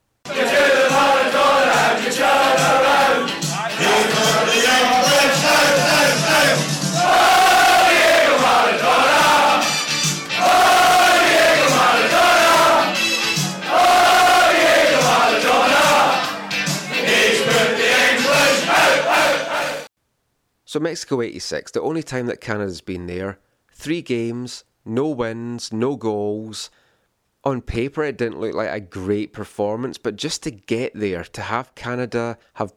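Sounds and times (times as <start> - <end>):
football fans singing a terrace chant: 0.3 - 19.9
speech: 20.7 - 26.8, 27.4 - 32.7.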